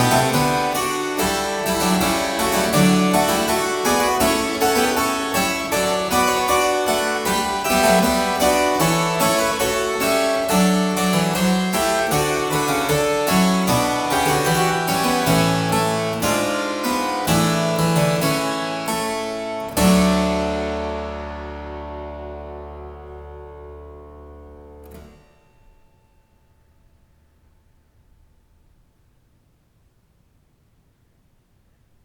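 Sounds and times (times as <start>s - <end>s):
keyboard prelude and fugue in E flat major: 0.0s - 25.2s.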